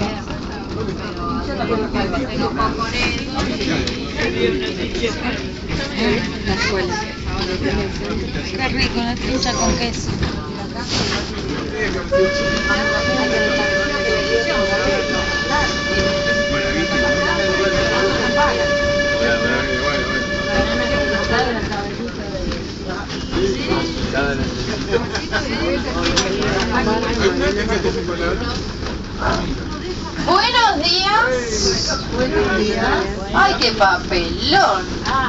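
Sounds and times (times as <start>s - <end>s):
old steam train clattering rattle: 0.0s - 31.2s
speech: 0.8s - 15.1s, 24.9s - 29.6s, 30.3s - 35.2s
old steam train horn blowing a long high-pitched note: 12.1s - 22.0s.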